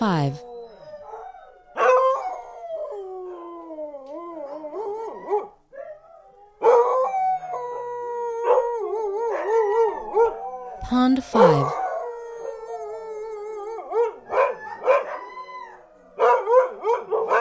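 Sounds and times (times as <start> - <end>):
speech: 0.0 - 0.5, 11.1 - 11.8
dog howling: 0.4 - 10.8, 11.7 - 17.3
dog sharp barks: 14.0 - 15.3, 16.2 - 17.3.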